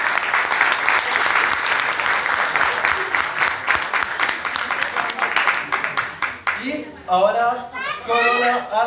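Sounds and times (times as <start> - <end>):
audience applause: 0.0 - 6.7
speech: 7.1 - 8.8.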